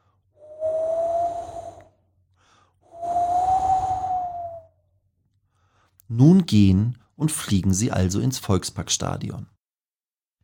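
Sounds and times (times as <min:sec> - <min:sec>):
cold wind gusting: 0:00.5 - 0:01.8, 0:03.0 - 0:04.7
speech: 0:06.1 - 0:09.6.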